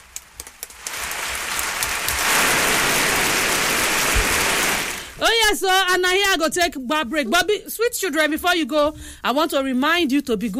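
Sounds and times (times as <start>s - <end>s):
audience clapping: 0.0s - 5.2s
speech: 5.5s - 10.5s.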